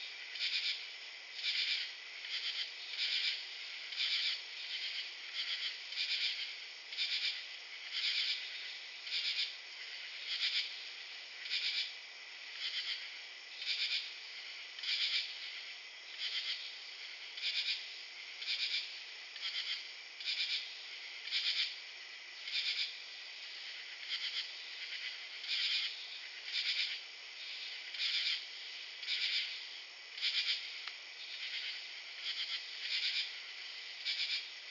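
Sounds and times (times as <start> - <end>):
forest night ambience: 0.0 - 34.6.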